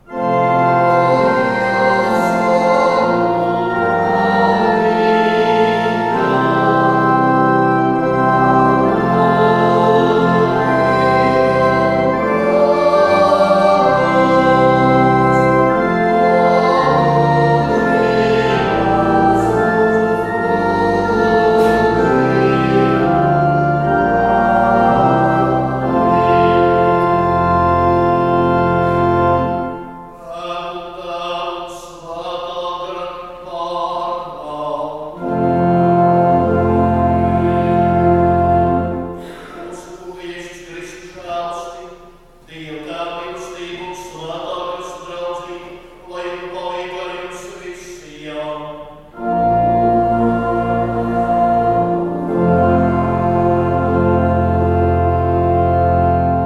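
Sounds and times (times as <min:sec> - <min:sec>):
mass music from Rucava: 0:00.0 - 0:56.4.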